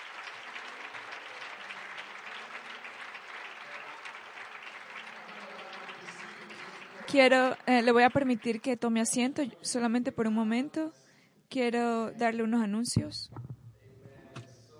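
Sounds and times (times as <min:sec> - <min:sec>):
crowd clapping: 0:00.0 - 0:09.2
speech: 0:07.1 - 0:11.0, 0:11.6 - 0:13.5.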